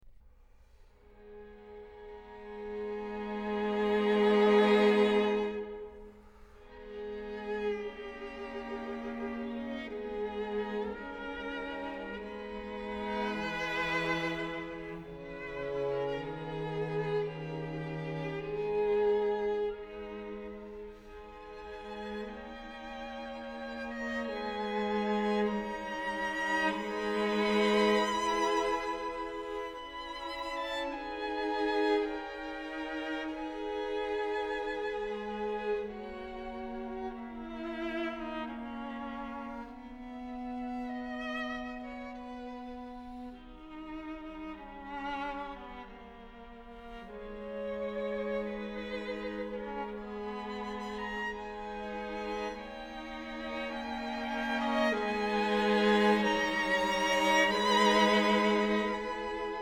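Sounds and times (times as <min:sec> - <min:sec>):
string quartet: 0:00.0 - 0:59.5.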